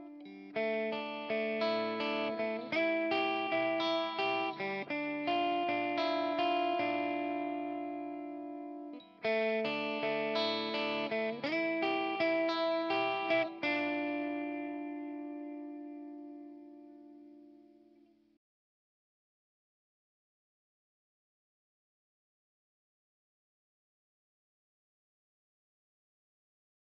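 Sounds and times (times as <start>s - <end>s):
PRS guitar through Mesa MK 2 amplifier, clean tone: 0.0s - 18.4s.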